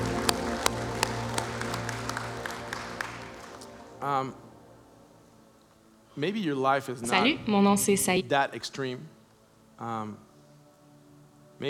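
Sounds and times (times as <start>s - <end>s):
audience clapping: 0.0s - 4.7s
speech: 4.0s - 4.5s, 6.2s - 9.2s, 9.8s - 10.2s.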